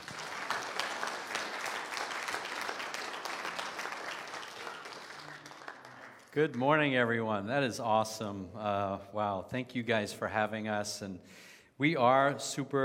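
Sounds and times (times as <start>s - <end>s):
audience applause welcoming a speaker: 0.0s - 6.6s
speech: 6.4s - 12.8s.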